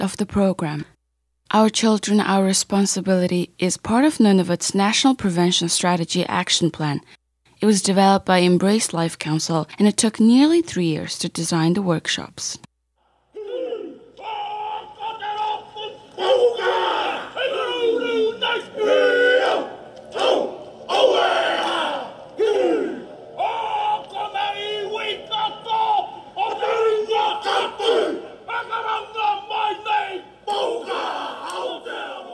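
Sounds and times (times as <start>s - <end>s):
speech: 0.0s - 0.9s, 1.5s - 12.7s
haka tribute chant shouted by a biker gang in New Zealand: 13.0s - 32.3s.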